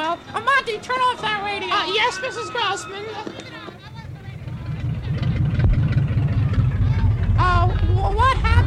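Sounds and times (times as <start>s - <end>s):
speech: 0.1s - 3.5s
car engine running roughly as the car runs out of gas: 3.9s - 8.6s.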